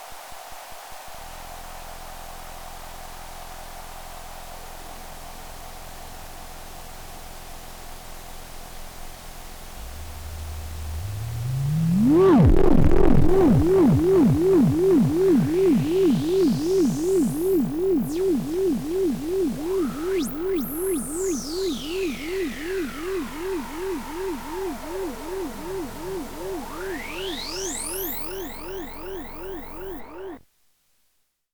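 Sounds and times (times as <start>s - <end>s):
tone with LFO mapped to pan: 9.7s - 30.4s.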